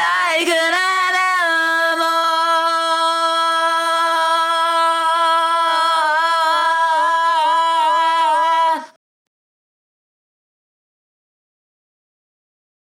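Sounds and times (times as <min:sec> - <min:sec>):
a cappella singing: 0:00.0 - 0:09.0.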